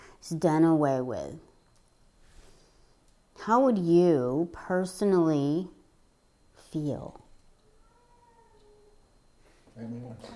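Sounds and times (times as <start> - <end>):
hiss: 0.0 - 10.3
speech: 0.2 - 1.5, 3.4 - 5.8, 6.7 - 7.2, 9.8 - 10.3
pet cat meowing: 7.6 - 8.8.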